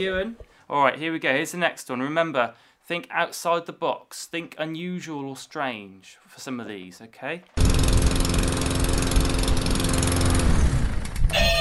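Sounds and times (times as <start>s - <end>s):
speech: 0.0s - 8.1s
lawnmower engine running: 7.6s - 11.3s.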